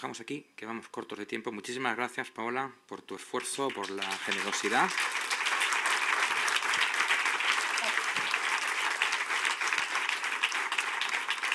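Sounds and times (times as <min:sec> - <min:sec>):
speech: 0:00.0 - 0:05.2
audience applause: 0:03.4 - 0:11.5.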